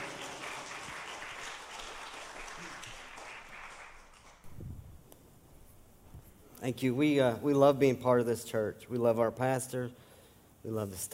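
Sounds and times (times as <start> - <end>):
audience hand clapping: 0.0 - 4.6
speech: 6.6 - 10.0, 10.6 - 11.1.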